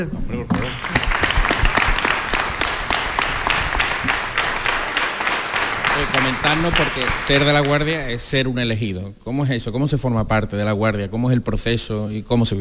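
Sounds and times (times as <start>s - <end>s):
speech: 0.0s - 1.0s, 6.0s - 12.5s
audience applause for guests: 0.5s - 8.0s.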